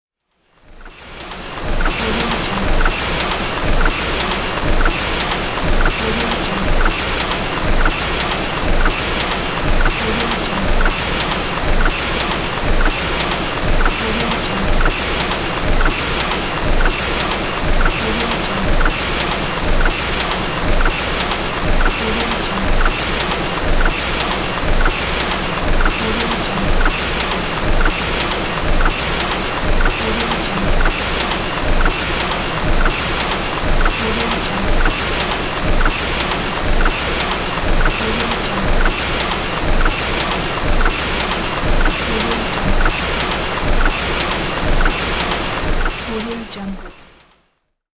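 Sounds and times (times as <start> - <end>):
car factory assembly line: 0.8 - 47.3.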